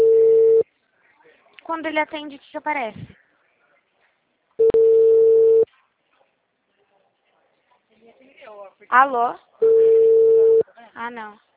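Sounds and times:
telephone ringback tone while a call connects: 0:00.0 - 0:00.6, 0:04.6 - 0:05.6, 0:09.6 - 0:10.6
speech: 0:01.8 - 0:03.2, 0:08.8 - 0:09.9, 0:11.0 - 0:11.5.

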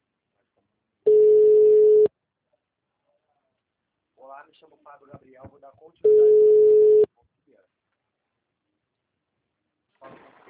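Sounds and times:
telephone tone after a dropped phone call: 0:01.1 - 0:02.1, 0:06.1 - 0:07.1
speech: 0:04.5 - 0:07.8.

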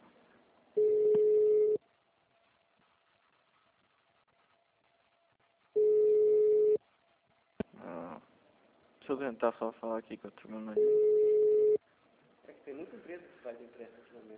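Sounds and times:
telephone ringback tone of a call to a Santander bank loan agency: 0:00.8 - 0:01.8, 0:05.8 - 0:06.8, 0:10.8 - 0:11.8
speech: 0:09.1 - 0:11.3, 0:12.6 - 0:14.3.

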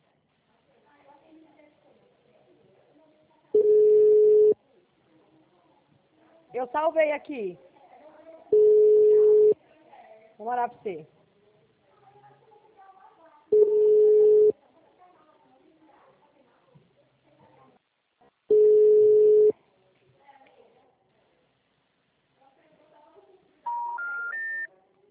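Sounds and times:
telephone busy signal: 0:03.6 - 0:04.6, 0:08.6 - 0:09.6, 0:13.6 - 0:14.5, 0:18.5 - 0:19.5, 0:23.7 - 0:24.7
speech: 0:06.6 - 0:07.7, 0:10.4 - 0:11.2.

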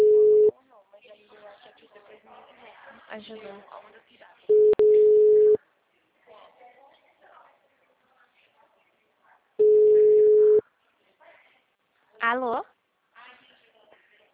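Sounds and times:
telephone ringback tone on a call: 0:00.0 - 0:00.5, 0:04.5 - 0:05.6, 0:09.6 - 0:10.6.

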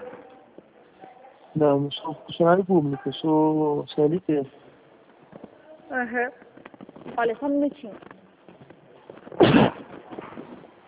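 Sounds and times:
speech: 0:01.6 - 0:04.6, 0:06.0 - 0:06.5, 0:07.1 - 0:08.1
sneeze: 0:09.3 - 0:10.0.

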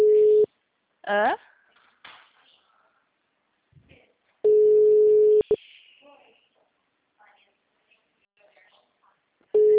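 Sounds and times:
ringback tone of an outgoing phone call: 0:00.0 - 0:00.5, 0:04.5 - 0:05.5, 0:09.6 - 0:09.7
speech: 0:01.1 - 0:01.5.

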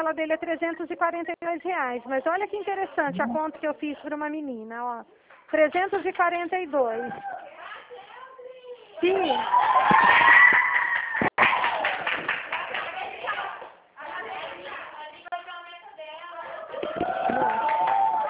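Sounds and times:
speech: 0:00.0 - 0:07.6, 0:09.0 - 0:10.3
office staff shouting and celebrating: 0:09.0 - 0:12.0, 0:16.5 - 0:18.2
scattered claps and thumps: 0:11.2 - 0:12.9.

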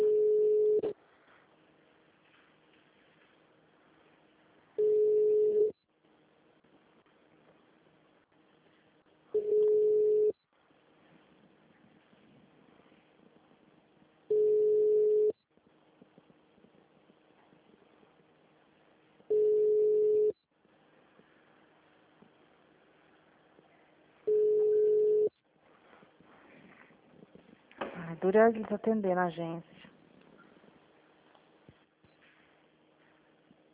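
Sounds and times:
telephone tones from a call to Santander bank's phone menu: 0:00.0 - 0:00.9, 0:04.8 - 0:05.7, 0:09.4 - 0:10.4, 0:14.3 - 0:15.3, 0:19.3 - 0:20.4, 0:24.3 - 0:25.3
speech: 0:28.2 - 0:29.8.

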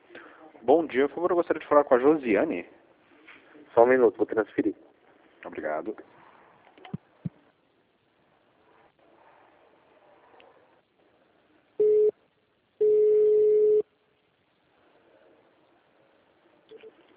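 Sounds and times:
speech: 0:00.6 - 0:02.8, 0:03.7 - 0:06.2
telephone busy tone after dropped call: 0:12.8 - 0:13.8.

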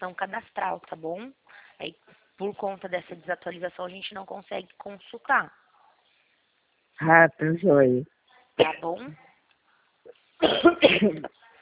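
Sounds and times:
speech: 0:00.0 - 0:05.6, 0:07.0 - 0:09.2, 0:10.4 - 0:11.4
person coughing after choking: 0:10.4 - 0:11.3.

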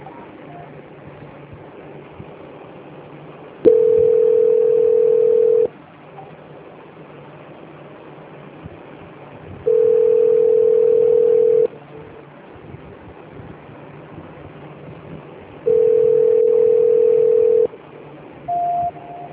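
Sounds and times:
telephone line tones during a call transfer: 0:03.7 - 0:05.7, 0:09.7 - 0:11.7, 0:15.7 - 0:17.8, 0:18.5 - 0:19.3
short higher-pitched beep: 0:18.5 - 0:19.3.

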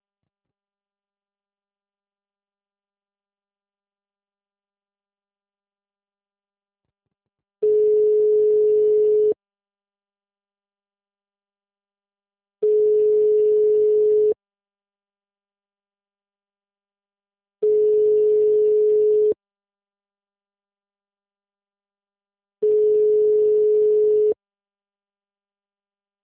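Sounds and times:
telephone busy tone after a failed call: 0:07.6 - 0:09.4, 0:12.6 - 0:14.4, 0:17.6 - 0:19.4, 0:22.6 - 0:24.4.

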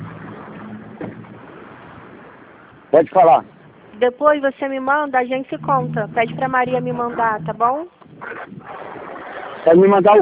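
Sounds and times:
bus passing by: 0:00.0 - 0:04.5, 0:05.4 - 0:07.9
speech: 0:02.9 - 0:09.0, 0:09.6 - 0:10.1.

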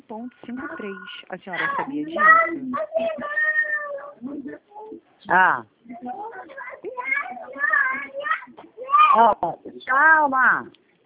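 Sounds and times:
speech: 0:00.1 - 0:03.4, 0:04.2 - 0:06.2, 0:09.1 - 0:10.8
young child shouting loudly in the room: 0:02.2 - 0:04.2, 0:06.4 - 0:09.3.

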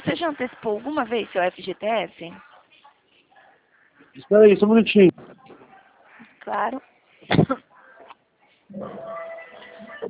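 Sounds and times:
speech: 0:00.2 - 0:02.5, 0:04.2 - 0:05.3, 0:06.4 - 0:07.7, 0:08.7 - 0:09.3
person coughing: 0:07.3 - 0:07.6.

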